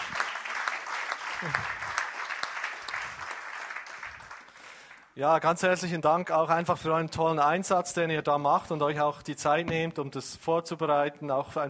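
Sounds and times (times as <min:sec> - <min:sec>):
audience applause: 0:00.0 - 0:05.0
speech: 0:01.4 - 0:01.8, 0:05.2 - 0:11.6.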